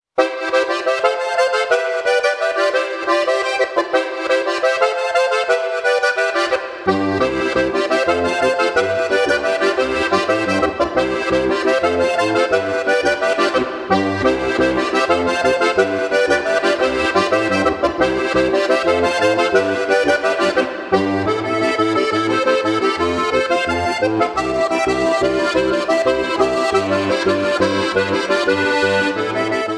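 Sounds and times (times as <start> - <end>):
Styrian harmonica button accordion: 0.1 - 29.7.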